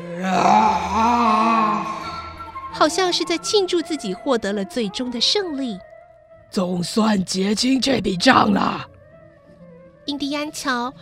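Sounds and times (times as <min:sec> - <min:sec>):
man howling loudly at night sky: 0:00.0 - 0:02.4
speech: 0:02.8 - 0:05.9, 0:06.5 - 0:08.9, 0:10.1 - 0:11.0.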